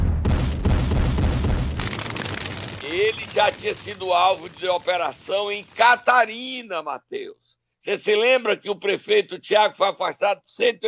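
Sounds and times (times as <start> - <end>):
MOAB bomb explosion sound effect: 0.0 - 5.9
speech: 3.0 - 10.8.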